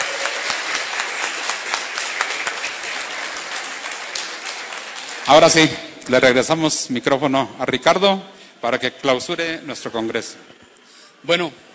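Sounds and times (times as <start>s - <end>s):
audience applause: 0.0s - 5.8s
speech: 5.3s - 10.6s, 11.2s - 11.7s.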